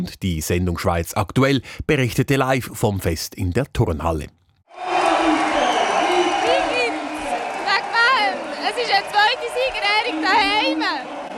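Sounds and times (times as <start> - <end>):
speech: 0.0 - 4.9
large indoor crowd clapping and cheering: 4.7 - 11.3.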